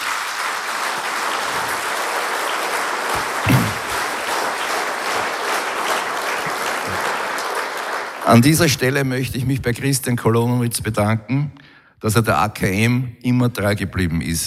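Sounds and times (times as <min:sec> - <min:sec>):
audience applause: 0:00.0 - 0:08.9
speech: 0:08.3 - 0:14.4.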